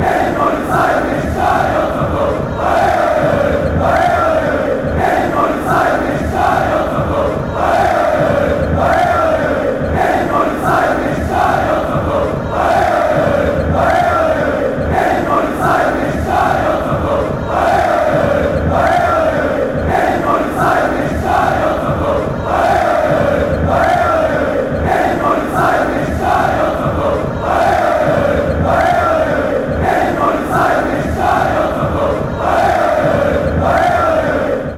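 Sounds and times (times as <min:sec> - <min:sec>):
stadium fans chanting: 0:00.0 - 0:34.7.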